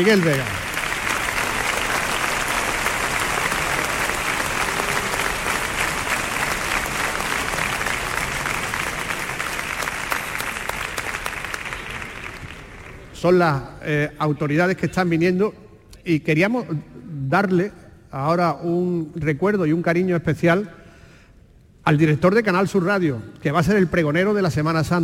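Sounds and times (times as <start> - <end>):
speech: 0.0 - 0.6, 13.2 - 20.8, 21.8 - 25.0
audience applause: 0.0 - 13.2.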